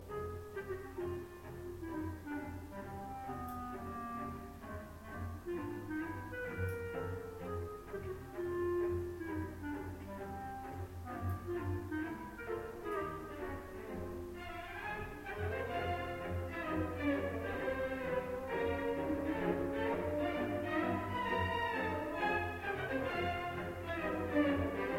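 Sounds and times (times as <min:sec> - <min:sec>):
march music: 0:00.0 - 0:24.9.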